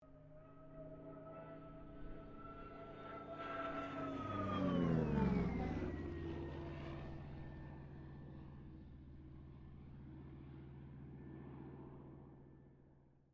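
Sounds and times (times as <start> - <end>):
CA-13 Boomerang aircraft passing: 0.4 - 12.4.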